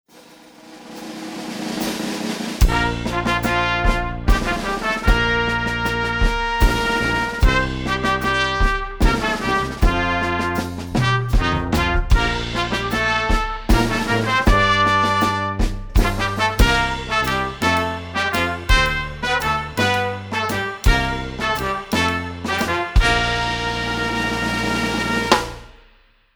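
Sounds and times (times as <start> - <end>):
fanfare: 1.0 - 25.9.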